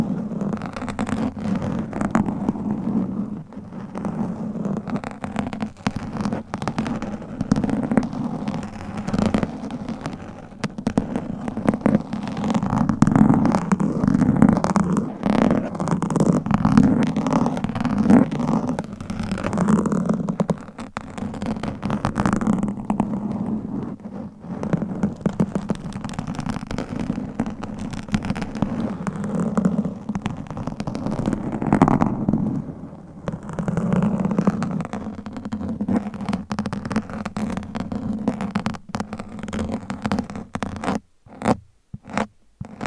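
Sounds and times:
scratching on a microphone: 0.0s - 42.8s.

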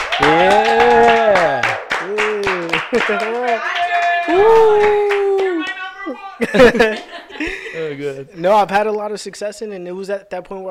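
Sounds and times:
audience clapping: 0.0s - 6.1s
speech: 0.2s - 0.8s, 3.0s - 5.2s, 6.1s - 10.6s
laughter: 0.2s - 3.7s, 4.3s - 8.2s.

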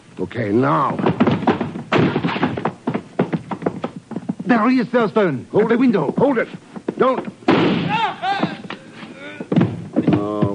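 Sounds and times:
speech: 0.2s - 1.5s, 4.5s - 7.7s
door being battered and forced open: 1.0s - 3.3s, 7.5s - 8.1s, 9.5s - 10.3s.

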